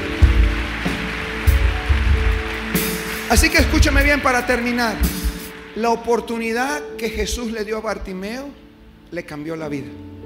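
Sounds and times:
crowd audience applause: 0.0s - 6.8s
speech: 3.3s - 5.2s, 5.8s - 10.1s.

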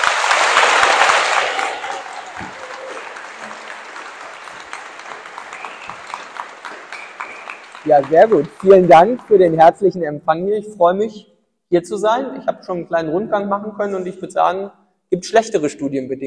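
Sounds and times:
audience applause: 0.0s - 9.8s
speech: 7.9s - 16.2s.

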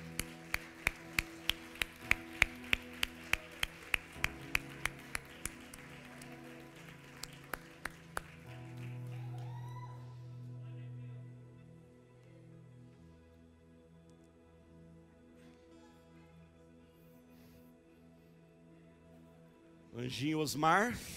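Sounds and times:
audience applauding: 0.0s - 10.2s
speech: 20.0s - 21.1s.

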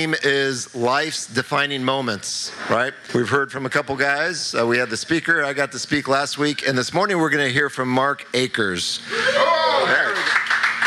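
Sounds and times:
speech: 0.0s - 10.3s
crowd applause: 9.4s - 10.8s.

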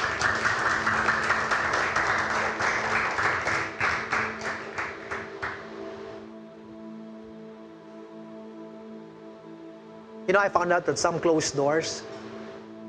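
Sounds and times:
church congregation applauding: 0.0s - 6.2s
speech: 10.3s - 12.2s.

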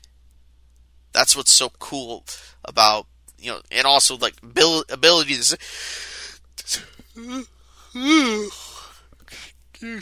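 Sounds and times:
speech: 1.2s - 8.7s, 9.3s - 10.0s
person yawning: 6.6s - 10.0s.

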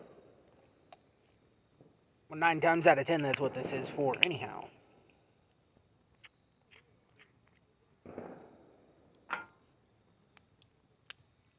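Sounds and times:
fireworks going off outside: 0.0s - 0.9s, 1.7s - 5.0s, 8.0s - 9.8s
speech: 2.3s - 4.8s.

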